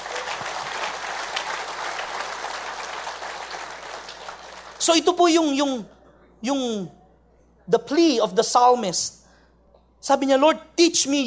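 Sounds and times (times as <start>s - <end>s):
church congregation applauding during a sermon: 0.0s - 5.2s
speech: 4.8s - 7.0s, 7.7s - 9.2s, 10.0s - 11.2s.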